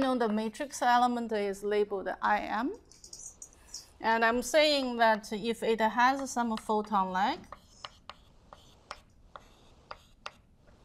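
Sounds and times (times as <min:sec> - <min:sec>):
speech: 0:00.1 - 0:03.0, 0:04.0 - 0:07.6
chalk tapping and scratching on board during a physics lecture: 0:06.2 - 0:10.5.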